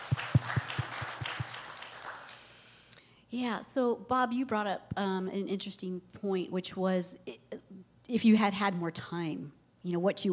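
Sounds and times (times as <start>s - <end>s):
audience applause: 0.0s - 2.5s
speech: 3.3s - 7.5s, 8.1s - 10.3s.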